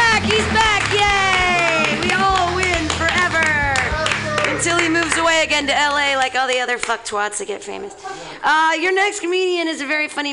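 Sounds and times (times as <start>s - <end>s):
audience clapping hands: 0.0s - 7.3s
speech: 5.4s - 10.3s.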